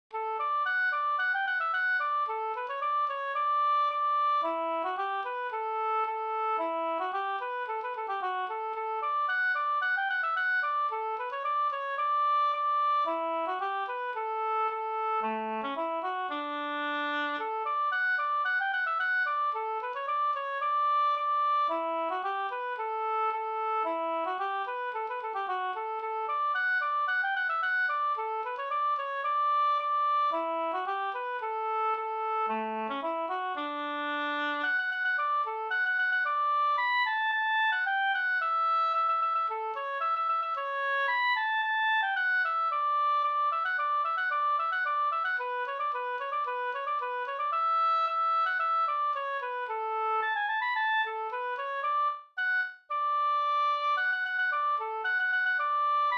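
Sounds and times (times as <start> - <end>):
polkett music: 0.1 - 56.1.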